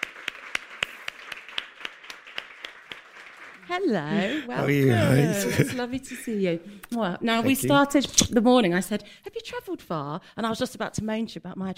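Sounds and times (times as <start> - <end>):
audience hand claps welcoming a speaker: 0.0 - 3.7
speech: 3.7 - 11.7
laughter: 4.1 - 6.6.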